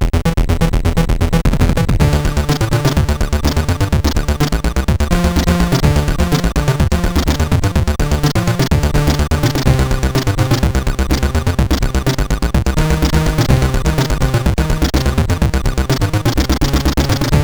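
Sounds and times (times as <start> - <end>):
PAL SID CSG8580R5 chip music: 0.0 - 17.4.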